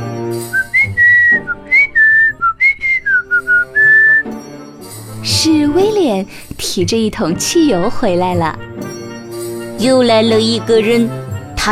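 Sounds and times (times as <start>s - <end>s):
person whistling: 0.4s - 4.3s
speech: 6.1s - 8.7s, 9.8s - 11.7s.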